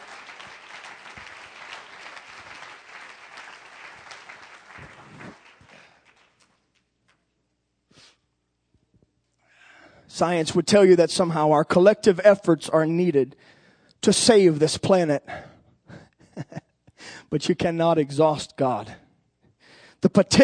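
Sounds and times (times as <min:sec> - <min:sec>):
audience clapping hands in praise: 0:00.0 - 0:07.2
speech: 0:10.2 - 0:15.5, 0:17.3 - 0:19.0, 0:20.1 - 0:20.4.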